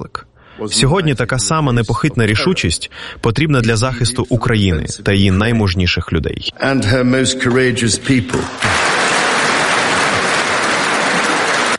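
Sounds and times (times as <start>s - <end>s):
speech: 0.0s - 8.9s
standing ovation applause in a hall: 8.3s - 11.7s.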